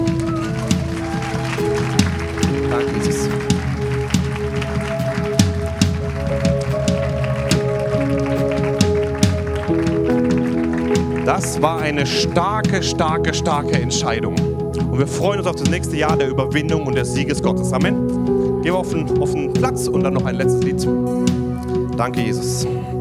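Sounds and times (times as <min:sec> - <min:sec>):
church audience applause: 0:00.0 - 0:14.2
speech: 0:11.6 - 0:21.4, 0:22.0 - 0:22.9.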